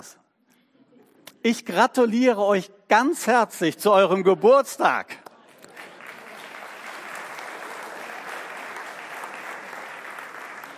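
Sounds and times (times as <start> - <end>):
speech: 0.0 - 0.3, 1.4 - 5.2
applause: 5.3 - 10.7.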